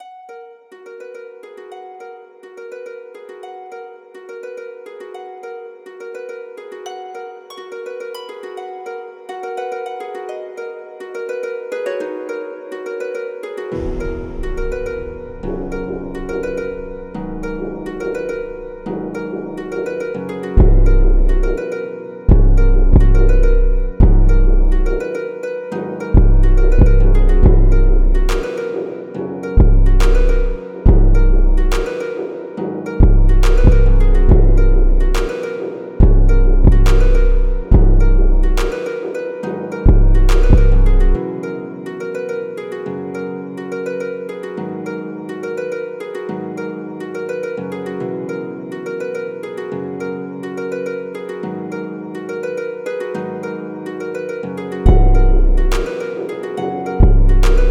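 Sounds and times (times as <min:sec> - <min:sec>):
emo beat at 140 BPM: 0:13.7 - 0:25.1, 0:26.0 - 0:41.2, 0:54.8 - 0:57.6.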